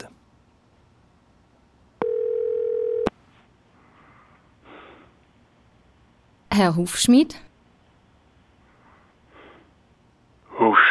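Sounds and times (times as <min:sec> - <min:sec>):
telephone call ringing tone: 0:02.0 - 0:03.1
speech: 0:06.6 - 0:07.5.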